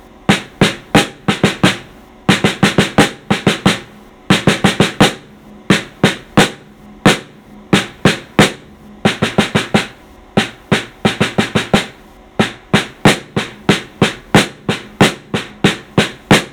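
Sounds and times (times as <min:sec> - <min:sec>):
snare drum solo: 0:00.3 - 0:16.5.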